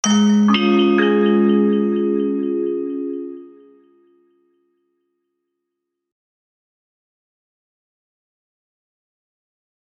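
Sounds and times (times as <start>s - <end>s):
music logo: 0.0s - 4.2s.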